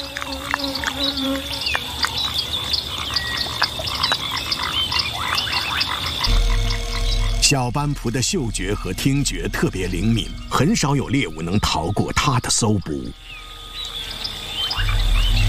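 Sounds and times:
constant high insect buzz: 0:00.0 - 0:11.0, 0:13.1 - 0:15.4
bullfrogs croaking in a night chorus: 0:00.0 - 0:15.4
scattered chirps: 0:00.0 - 0:15.4
speech: 0:01.2 - 0:01.8, 0:07.5 - 0:13.3
deep rumble: 0:06.2 - 0:11.8, 0:14.7 - 0:15.4.

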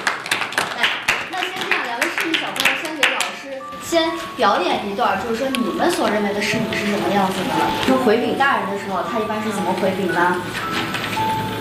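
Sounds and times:
audience applause: 0:00.0 - 0:03.5
speech: 0:03.9 - 0:10.8.

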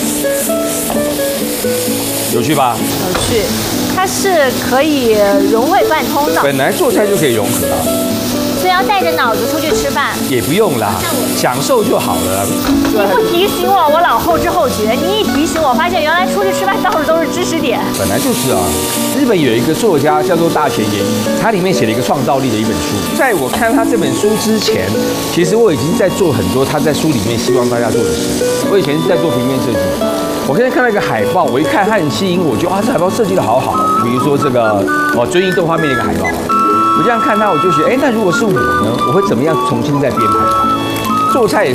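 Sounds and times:
meat stir-frying and sizzling in pan: 0:00.0 - 0:41.7
speech: 0:01.6 - 0:41.7.

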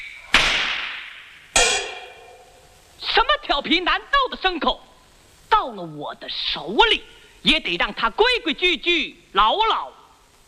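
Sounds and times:
whip crack: 0:00.2 - 0:02.0
speech: 0:03.6 - 0:04.9, 0:05.6 - 0:10.4.

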